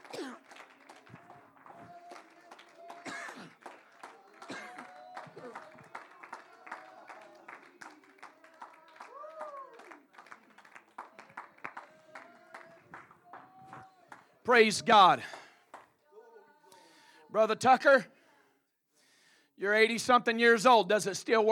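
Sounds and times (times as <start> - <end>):
audience clapping hands: 0.0 - 16.0
speech: 14.5 - 15.4, 17.4 - 18.1, 19.6 - 21.5.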